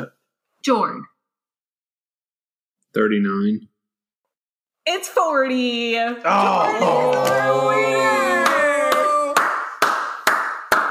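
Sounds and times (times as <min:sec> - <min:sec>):
speech: 0:00.0 - 0:01.1, 0:02.9 - 0:03.7, 0:04.8 - 0:08.3
hand claps: 0:08.3 - 0:10.8.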